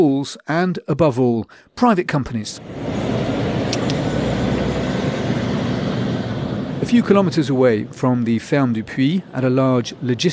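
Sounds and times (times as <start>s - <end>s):
speech: 0.0s - 3.3s, 6.9s - 10.3s
lorries rumbling out of a depot: 2.6s - 10.3s.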